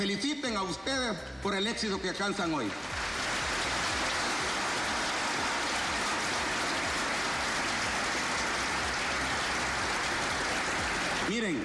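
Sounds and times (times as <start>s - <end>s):
speech: 0.0s - 3.0s, 11.3s - 11.6s
crowd clapping: 2.5s - 11.6s.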